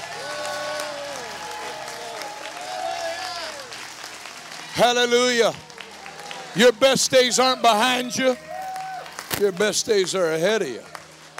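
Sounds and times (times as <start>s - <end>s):
audience hand clapping: 0.0s - 11.3s
speech: 4.8s - 5.7s, 6.6s - 8.5s, 9.4s - 10.9s.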